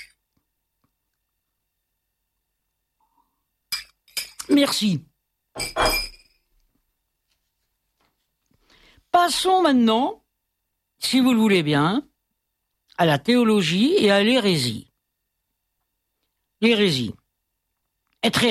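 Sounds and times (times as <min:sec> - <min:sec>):
glass clinking: 0:03.7 - 0:04.5, 0:05.6 - 0:06.5
speech: 0:04.5 - 0:06.1, 0:09.2 - 0:10.2, 0:11.0 - 0:12.1, 0:13.0 - 0:14.9, 0:16.6 - 0:17.2, 0:18.2 - 0:18.4.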